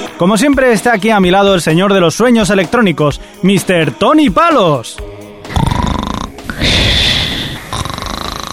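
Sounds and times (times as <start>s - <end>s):
speech: 0.2s - 5.1s
voice imitating snoring: 5.5s - 8.5s.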